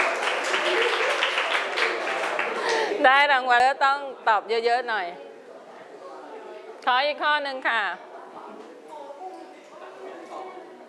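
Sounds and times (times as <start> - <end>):
classroom applause from pupils: 0.0 - 2.9
speech: 3.0 - 5.3, 6.8 - 8.1.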